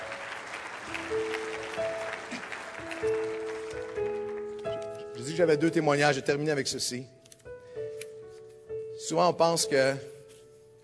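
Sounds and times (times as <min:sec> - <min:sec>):
audience applause: 0:00.0 - 0:04.4
speech: 0:05.3 - 0:07.2, 0:09.1 - 0:10.2.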